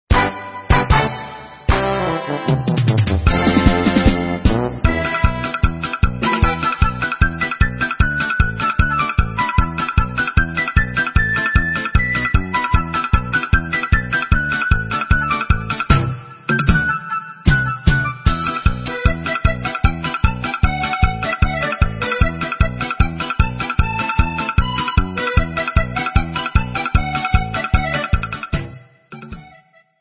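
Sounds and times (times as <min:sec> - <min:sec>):
instrumental music: 0:00.1 - 0:29.9.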